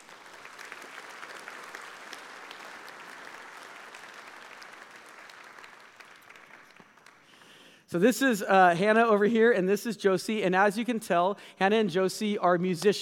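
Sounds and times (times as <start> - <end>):
church audience applauding as students take the stage: 0.0 - 7.6
speech: 7.9 - 13.0.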